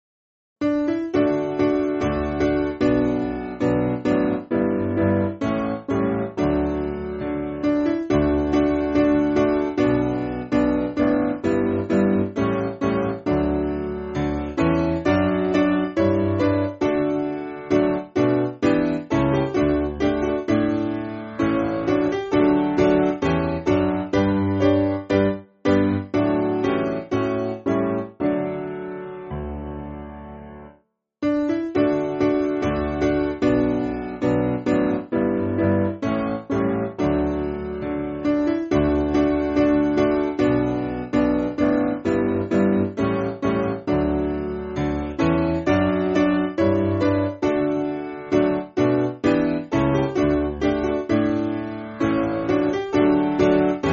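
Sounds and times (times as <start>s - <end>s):
piano: 0.6s - 53.9s.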